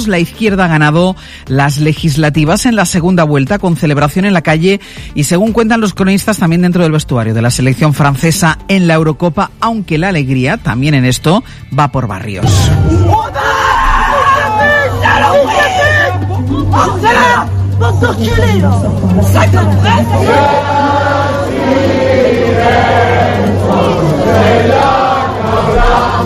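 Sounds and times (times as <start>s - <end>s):
speech: 0.0s - 13.7s, 16.7s - 20.8s, 22.6s - 26.2s
crowd shouting at Reagrupación Nacional party headquarters: 12.7s - 17.5s, 19.8s - 26.2s.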